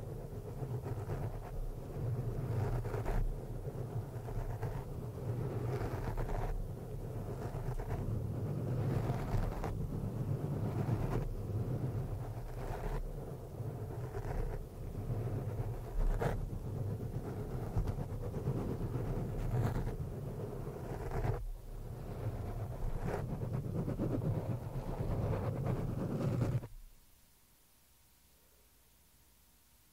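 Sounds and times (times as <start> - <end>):
scratching and rubbing on a microphone: 0.0 - 26.8
faint hum: 0.0 - 29.9.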